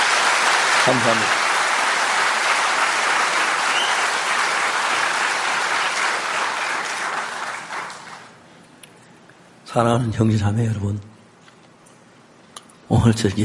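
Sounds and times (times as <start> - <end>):
church congregation clapping: 0.0 - 8.4
speech: 0.8 - 1.4, 9.7 - 11.1, 13.0 - 13.4.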